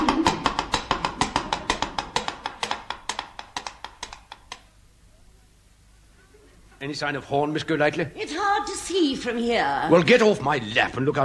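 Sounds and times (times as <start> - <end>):
coconut shells clopping like horse hooves: 0.0 - 4.7
speech: 6.8 - 11.2.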